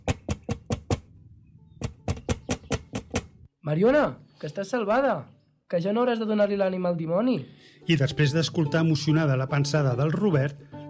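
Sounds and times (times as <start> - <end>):
knocking on window glass: 0.0 - 1.1, 1.8 - 3.4
speech: 3.7 - 10.8.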